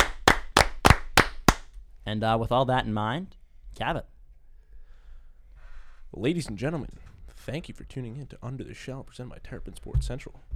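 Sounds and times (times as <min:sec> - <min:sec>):
single person clapping: 0:00.0 - 0:01.6
speech: 0:02.1 - 0:04.1, 0:06.1 - 0:10.5.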